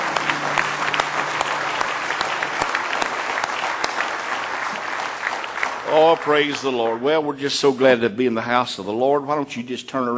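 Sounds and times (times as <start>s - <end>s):
people clapping hands in praise: 0.0s - 7.2s
speech: 6.0s - 10.1s.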